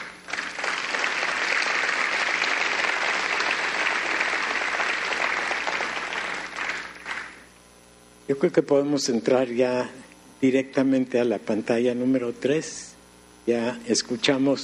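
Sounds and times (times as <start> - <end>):
audience applause: 0.0 - 7.5
speech: 8.3 - 12.9, 13.5 - 14.6.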